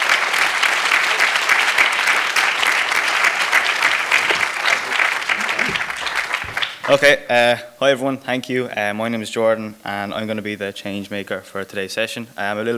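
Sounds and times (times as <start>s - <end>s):
conference audience applause welcoming a young speaker: 0.0s - 7.6s
laughter: 0.0s - 12.7s
speech: 6.9s - 12.7s.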